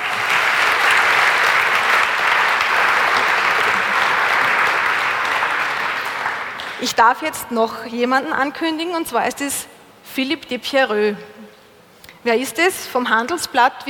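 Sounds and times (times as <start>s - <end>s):
audience applause: 0.0s - 6.9s
speech: 6.8s - 11.4s, 12.2s - 13.8s.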